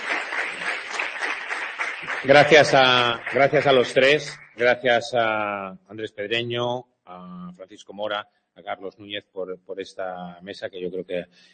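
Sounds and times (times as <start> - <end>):
audience applause: 0.0 - 4.7
speech: 2.2 - 11.5.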